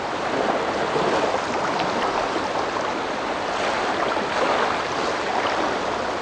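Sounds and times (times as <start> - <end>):
waves: 0.0 - 6.2.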